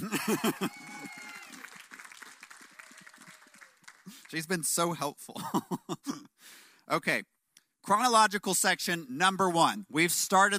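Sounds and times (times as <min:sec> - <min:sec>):
laughter: 0:00.0 - 0:01.6, 0:05.3 - 0:06.1
speech: 0:00.3 - 0:00.9, 0:04.3 - 0:06.2, 0:06.9 - 0:10.5
small group clapping: 0:00.7 - 0:04.6.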